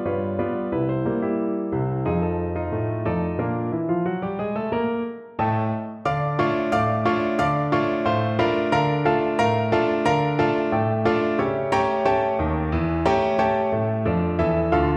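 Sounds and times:
piano piece: 0:00.0 - 0:14.9.

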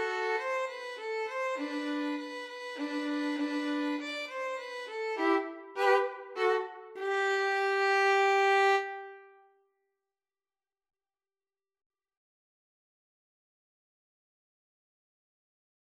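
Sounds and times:
fanfare on two violins and cello: 0:00.0 - 0:09.2.

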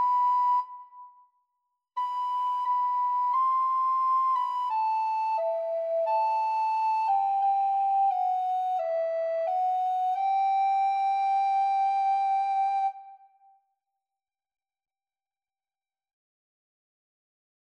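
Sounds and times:
alto recorder duet: 0:00.0 - 0:01.2, 0:02.0 - 0:13.3.

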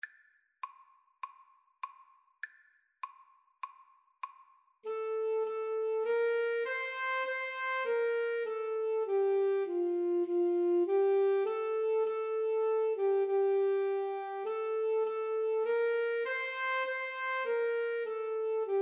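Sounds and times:
alto saxophone playing a hymn tune: 0:04.8 - 0:18.8.

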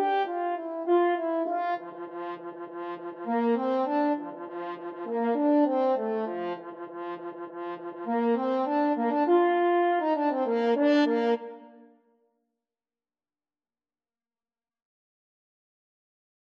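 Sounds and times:
french horn duet: 0:00.0 - 0:11.7.

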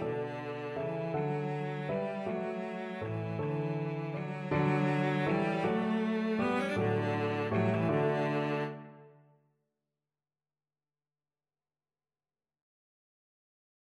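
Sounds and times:
violoncello: 0:00.0 - 0:09.2.

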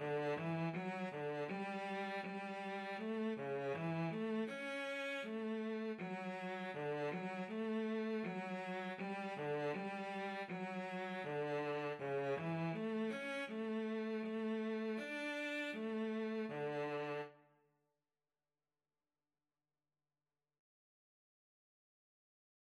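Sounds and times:
cello: 0:00.0 - 0:17.4
violin: 0:00.0 - 0:17.5.

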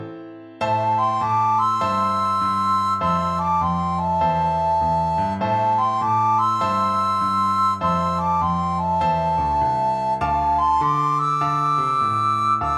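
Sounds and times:
cool blues recorder duet: 0:00.7 - 0:12.7.

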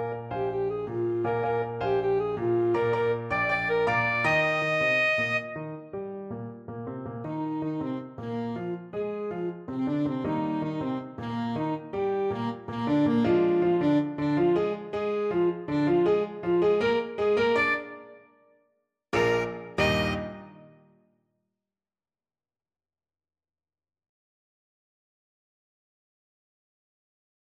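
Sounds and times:
saxophone: 0:00.0 - 0:05.9, 0:07.2 - 0:18.3, 0:19.2 - 0:20.8
salsa music: 0:19.2 - 0:20.6.

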